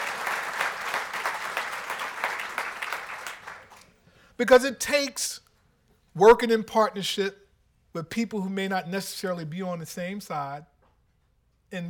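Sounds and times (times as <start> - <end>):
audience applause: 0.0 - 3.8
speech: 4.4 - 5.4, 6.2 - 10.7.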